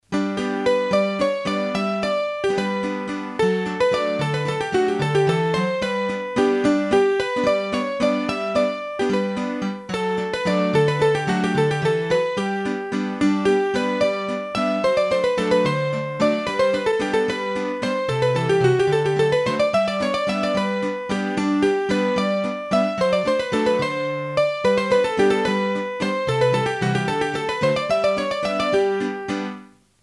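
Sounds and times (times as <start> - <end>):
waltz played on a hurdy-gurdy: 0.1 - 29.7.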